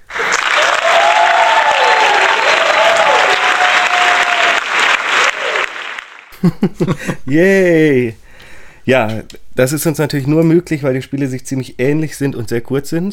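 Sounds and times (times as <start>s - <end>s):
played applause and cheering effect: 0.0s - 6.4s
laughter: 6.3s - 7.5s
speech: 6.4s - 8.2s, 8.8s - 13.1s.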